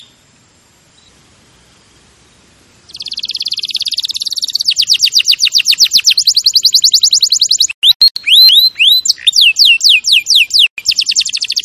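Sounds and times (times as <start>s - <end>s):
canary singing: 2.9s - 11.6s.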